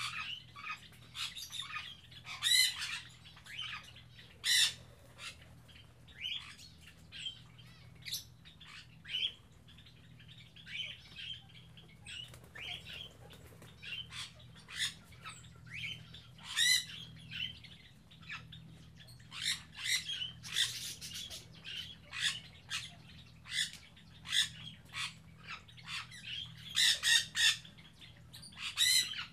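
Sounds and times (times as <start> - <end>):
birds chirping in an aviary on Spetses: 0.0 - 29.3.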